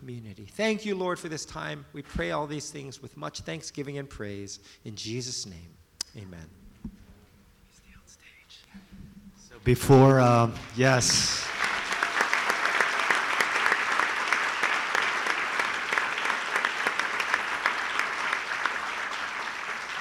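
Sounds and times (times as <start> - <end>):
speech: 0.1 - 6.6, 9.6 - 11.6
audience applause: 10.2 - 19.9.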